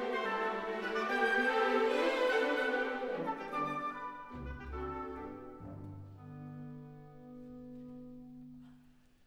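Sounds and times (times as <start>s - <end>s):
orchestra playing an allegretto: 0.0s - 7.3s.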